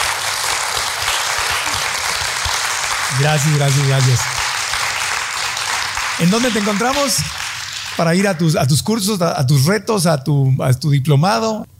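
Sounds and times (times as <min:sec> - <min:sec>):
audience applause: 0:00.0 - 0:08.9
speech: 0:03.1 - 0:04.4, 0:06.2 - 0:07.4, 0:08.0 - 0:11.7.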